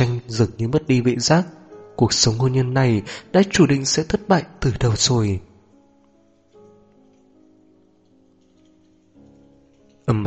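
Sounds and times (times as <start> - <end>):
sustained tonal music with low droning chords: 0.0 - 10.2
speech: 0.3 - 5.5, 10.1 - 10.2
rain pattering outside: 5.8 - 10.2.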